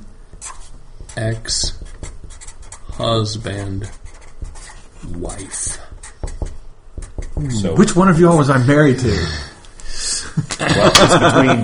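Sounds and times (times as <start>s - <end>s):
pen scratching on a surface while writing by hand: 0.3s - 8.5s
speech: 1.2s - 1.8s, 3.0s - 4.0s, 5.0s - 5.8s, 7.4s - 9.5s, 10.6s - 11.6s
laughter: 10.4s - 11.6s.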